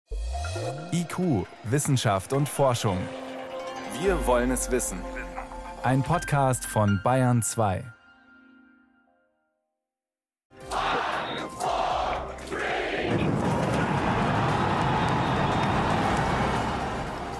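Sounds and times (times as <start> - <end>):
speech: 0.9 - 3.2, 4.0 - 5.2, 5.8 - 8.0
crowd cheering at rocket launch: 10.6 - 17.3.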